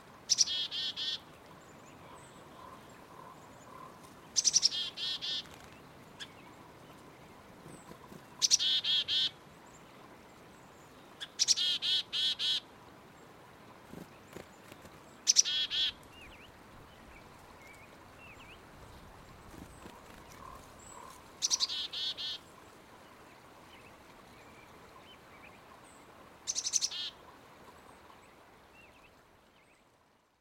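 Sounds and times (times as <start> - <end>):
faint hiss: 0.0 - 30.3
black-capped chickadee calls: 0.3 - 1.2, 2.6 - 5.6, 8.0 - 9.4, 11.2 - 12.6, 14.3 - 16.0, 19.5 - 22.4, 26.5 - 27.2.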